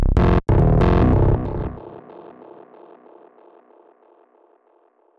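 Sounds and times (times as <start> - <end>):
cinematic electronic music: 0.2 - 3.0.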